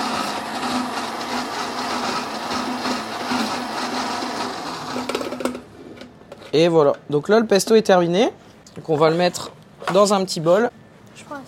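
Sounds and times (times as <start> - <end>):
blender whirring on setting 2 while blending rocket pesto: 0.0 - 5.7
speech: 6.5 - 11.3.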